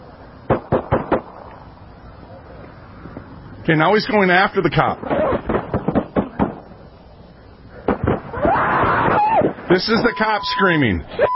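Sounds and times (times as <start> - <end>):
rifle gunshots: 0.5 - 1.5, 5.0 - 6.7, 7.8 - 8.4
speech: 3.7 - 5.3, 9.7 - 11.3.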